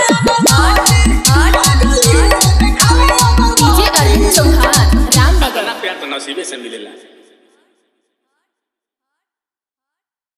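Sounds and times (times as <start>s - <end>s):
Bhojpuri dance music mix with heavy bass: 0.0s - 5.8s.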